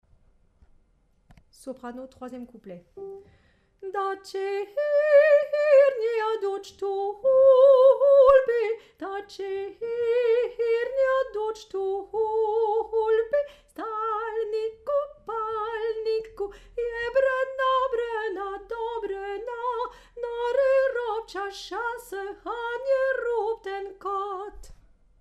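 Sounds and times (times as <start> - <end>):
soprano singing: 3.0 - 24.7.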